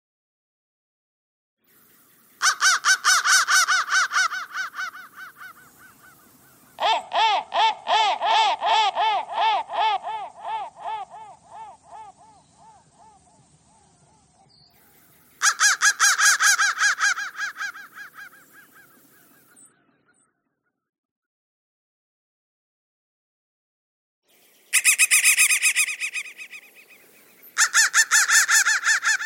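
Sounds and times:
crow calling harshly: 2.4s - 13.8s, 15.4s - 19.7s, 24.7s - 27.0s, 27.6s - 29.2s.

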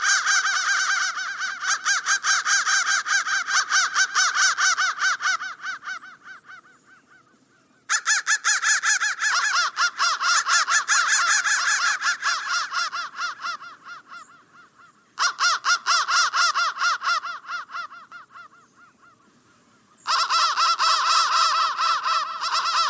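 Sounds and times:
crow chorus of harsh rapid caws: 0.0s - 22.8s.

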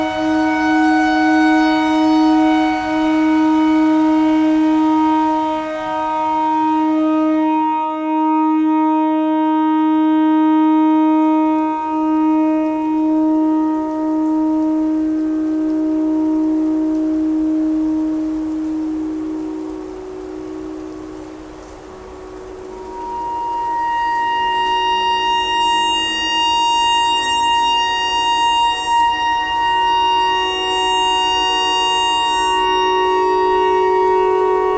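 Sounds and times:
clarinet notes in E pentatonic: 0.0s - 19.2s, 22.7s - 34.7s
tornado siren: 0.0s - 21.5s, 22.1s - 34.7s.

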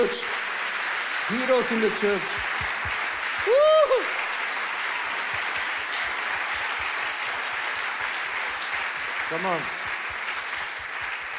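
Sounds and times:
speech: 0.0s - 0.4s, 1.3s - 2.7s, 3.4s - 4.2s, 9.3s - 9.8s
audience applause: 0.0s - 11.3s.

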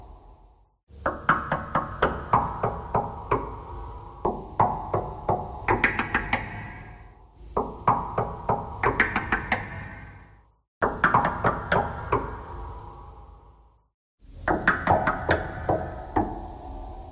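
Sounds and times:
knocking thread noise: 0.9s - 10.2s, 10.8s - 12.4s, 14.4s - 16.4s.

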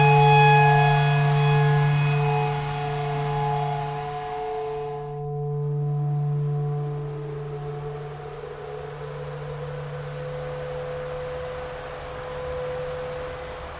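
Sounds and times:
clarinet: 0.0s - 5.2s
tornado siren: 0.0s - 12.4s.

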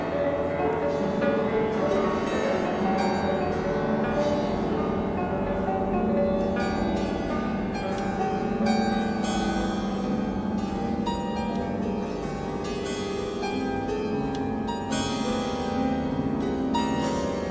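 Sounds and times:
piano string noise: 0.0s - 17.4s.

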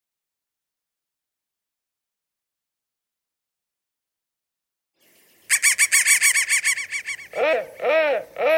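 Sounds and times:
crow cawing: 5.5s - 8.4s.

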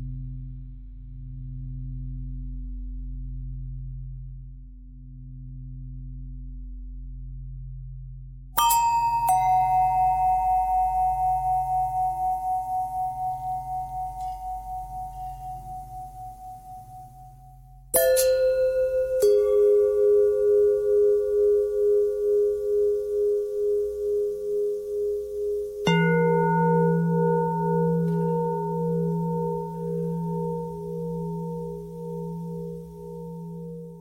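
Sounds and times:
long bell tone bending: 8.6s - 34.0s.

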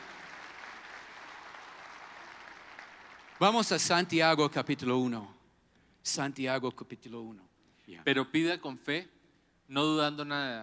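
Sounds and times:
church congregation applauding: 0.0s - 4.9s
speech: 3.4s - 5.4s, 6.0s - 10.6s.

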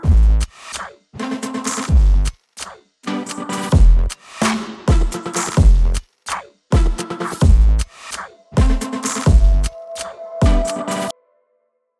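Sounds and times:
chiptune beats: 3.1s - 6.0s, 6.7s - 11.1s.

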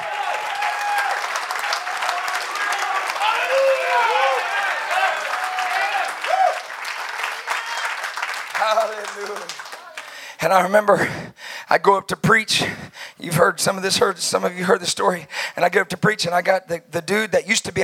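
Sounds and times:
audience clapping: 0.0s - 10.4s
speech: 10.4s - 17.8s.

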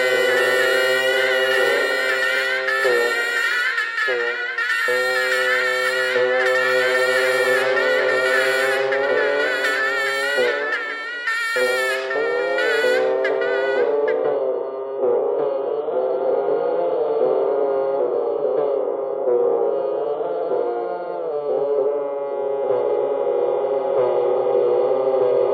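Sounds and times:
geese: 0.0s - 14.3s
bagpipe: 0.0s - 25.4s.

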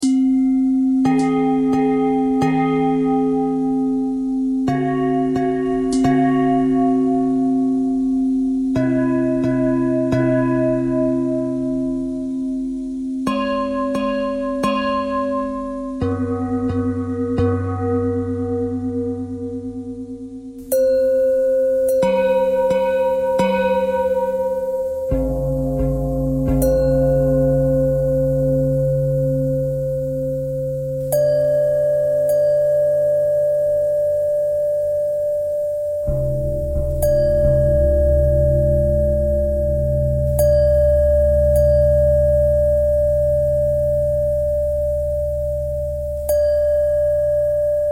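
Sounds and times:
pentatonic bell melody: 0.0s - 47.9s.

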